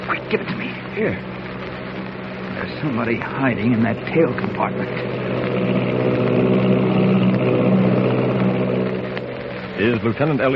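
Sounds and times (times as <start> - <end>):
Army plane engine roaring in flight: 0.0 - 10.5
speech: 0.3 - 1.4, 2.6 - 5.3, 9.8 - 10.5.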